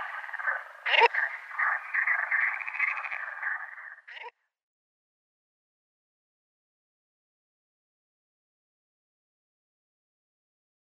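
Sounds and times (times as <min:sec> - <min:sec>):
male Baikal teal: 0:00.0 - 0:04.1.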